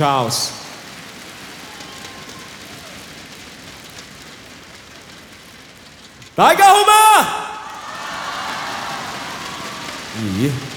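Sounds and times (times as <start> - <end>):
speech: 0.0 - 0.6, 6.4 - 7.4, 10.2 - 10.7
audience applause: 0.0 - 4.0, 6.4 - 10.7.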